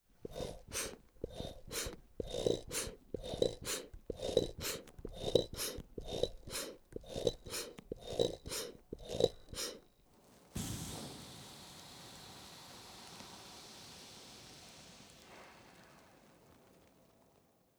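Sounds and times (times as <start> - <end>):
blood pressure monitor pumping: 0.2 - 9.8
air releasing quickly from blood pressure cuff: 10.5 - 16.3.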